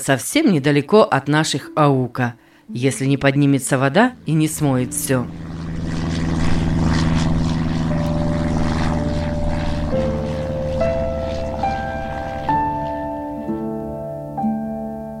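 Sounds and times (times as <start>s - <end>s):
speech: 0.0s - 5.5s
propeller airplane flying: 2.6s - 14.7s
rising whining tone: 3.4s - 14.2s.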